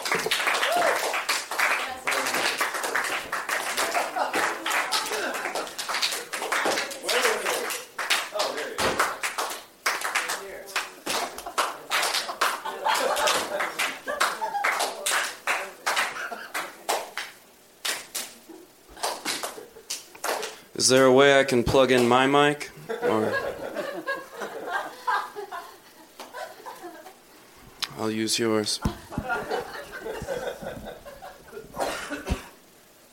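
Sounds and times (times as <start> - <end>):
slow clap for Josh Lampley: 0.0 - 18.4, 19.0 - 20.6, 28.8 - 31.6
laughter: 1.9 - 6.3, 11.2 - 15.1, 16.0 - 16.9, 22.7 - 27.2, 28.9 - 32.6
speech: 20.9 - 23.5, 28.2 - 29.0.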